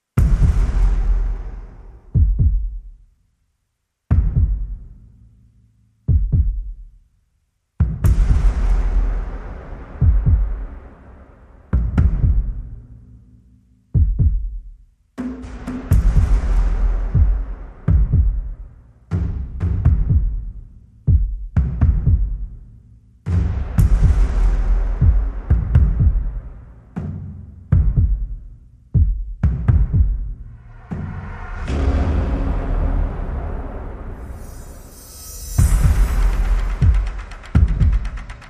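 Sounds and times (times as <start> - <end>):
percussion: 0.0 - 3.2, 4.1 - 5.5, 6.1 - 7.1, 7.8 - 38.4
sound effects: 30.7 - 37.5.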